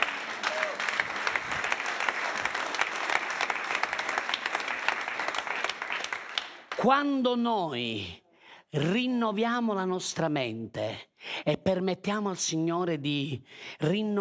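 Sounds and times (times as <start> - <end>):
audience applause: 0.0 - 6.8
speech: 6.8 - 14.1.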